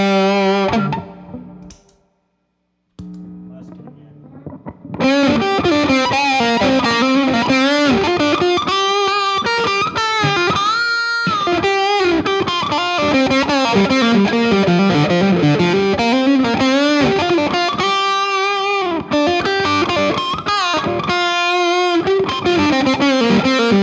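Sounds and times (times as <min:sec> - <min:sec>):
bass guitar soloing through a fuzz pedal: 0:00.0 - 0:01.7, 0:03.0 - 0:23.8.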